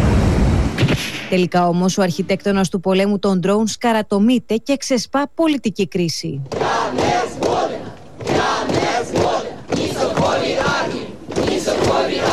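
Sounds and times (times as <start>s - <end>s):
speech: 1.0s - 7.3s
crowd of protesters chanting in street: 6.5s - 12.3s.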